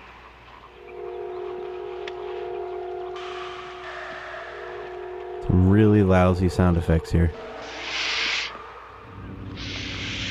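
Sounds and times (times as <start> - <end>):
speech: 5.5 - 7.6
snake hissing: 7.6 - 10.2.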